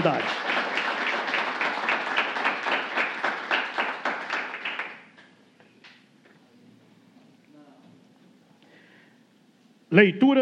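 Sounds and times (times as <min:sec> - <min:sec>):
audience applause: 0:00.0 - 0:05.2.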